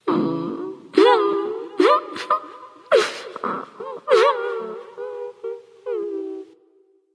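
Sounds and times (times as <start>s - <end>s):
person crying boo hoo: 1.0s - 6.4s.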